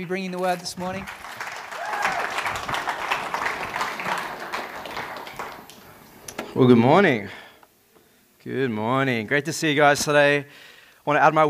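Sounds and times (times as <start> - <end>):
speech: 0.0 - 1.4, 6.6 - 7.4, 8.4 - 11.4
church congregation applauding during a morning service: 0.0 - 6.4.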